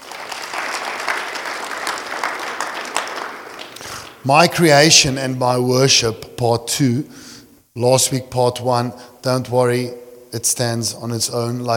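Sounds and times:
audience clapping: 0.0 - 4.3
speech: 4.2 - 11.7.

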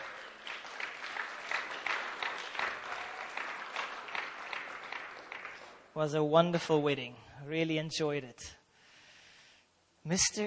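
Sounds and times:
audience applause for a honeymooning couple: 0.0 - 6.0
speech: 6.0 - 8.6, 10.0 - 10.4.

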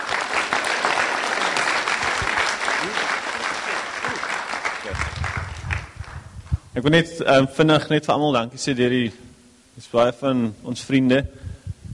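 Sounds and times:
crowd applauding: 0.0 - 6.4
speech: 6.8 - 9.2, 9.9 - 11.4.

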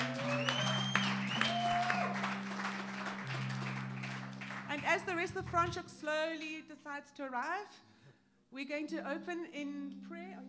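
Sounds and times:
audience applause: 0.0 - 5.8
speech: 4.9 - 7.9, 8.5 - 10.4.

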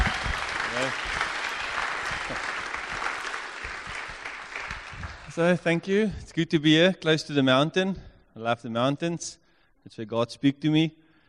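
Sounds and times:
church audience applause welcoming a new pastor: 0.0 - 5.6
speech: 0.8 - 1.2, 5.4 - 11.0.

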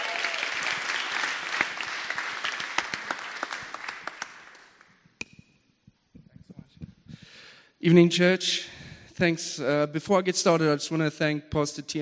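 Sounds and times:
church congregation in Cape Town applauding: 0.0 - 4.9
speech: 7.8 - 11.9.

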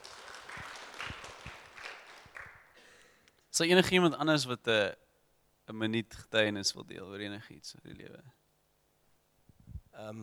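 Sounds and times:
small group clapping hands: 0.0 - 3.4
speech: 3.6 - 5.0, 5.7 - 8.4, 10.0 - 10.2.

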